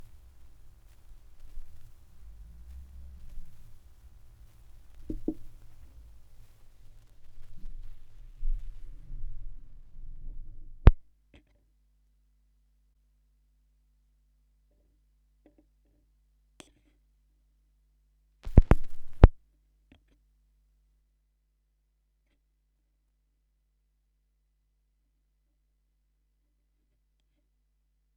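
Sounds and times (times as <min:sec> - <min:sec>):
vinyl record noise: 0:00.0 - 0:11.0, 0:18.4 - 0:19.4.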